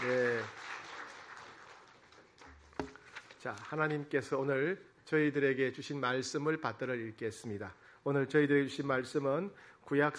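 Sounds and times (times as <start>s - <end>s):
speech: 0.0s - 0.6s, 3.4s - 10.1s
applause: 0.0s - 2.8s.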